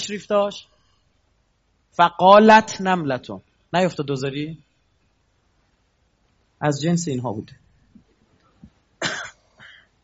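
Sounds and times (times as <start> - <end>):
speech: 0.0 - 0.7, 2.0 - 4.6, 6.6 - 7.6
faint low noise: 0.0 - 10.0
harsh cough: 9.0 - 9.9
throat-clearing rasp: 9.0 - 9.9.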